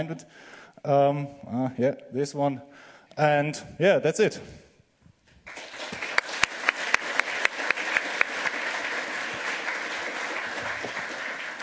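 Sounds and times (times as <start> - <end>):
speech: 0.0 - 4.6
audience applause: 5.4 - 11.6.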